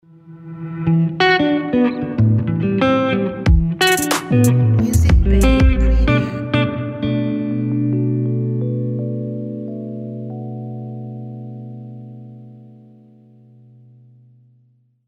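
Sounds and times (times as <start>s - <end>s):
RnB guitar logo jingle: 0.1s - 14.0s.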